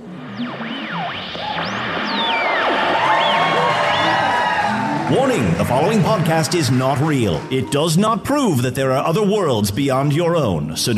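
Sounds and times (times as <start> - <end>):
fake audience crowd noise: 0.0 - 9.8
speech: 0.4 - 1.6, 5.1 - 10.9
fake audience whoops and whistles: 0.4 - 5.1.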